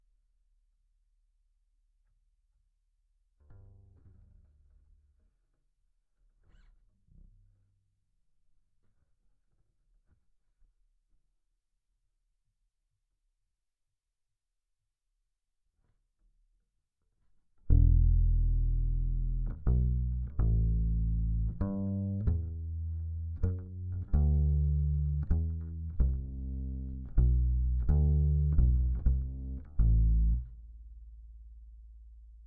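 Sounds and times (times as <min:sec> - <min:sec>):
bass guitar recorded by direct input: 0:17.7 - 0:32.4.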